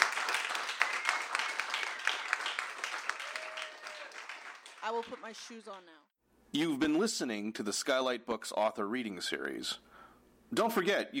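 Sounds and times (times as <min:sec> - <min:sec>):
audience applause: 0:00.0 - 0:05.8
speech: 0:04.9 - 0:09.9, 0:10.5 - 0:11.1.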